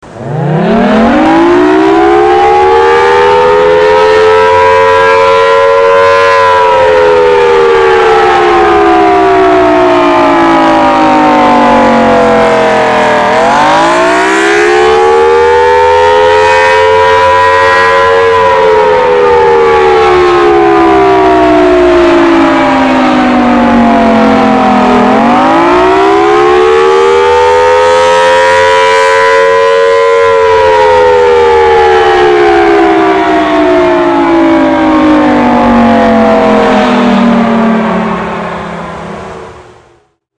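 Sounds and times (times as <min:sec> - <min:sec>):
air raid siren: 0:00.0 - 0:40.2.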